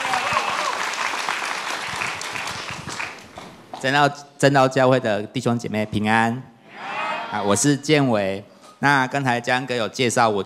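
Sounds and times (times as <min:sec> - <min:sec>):
audience applause welcoming a speaker: 0:00.0 - 0:03.4
speech: 0:03.8 - 0:06.5, 0:07.3 - 0:10.4.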